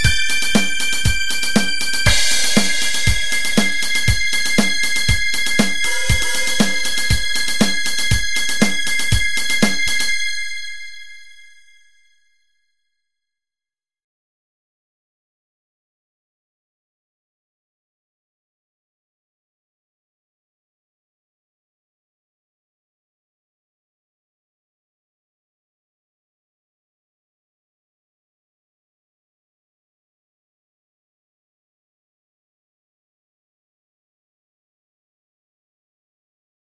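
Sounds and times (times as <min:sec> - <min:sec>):
trance remix: 0:00.0 - 0:11.3.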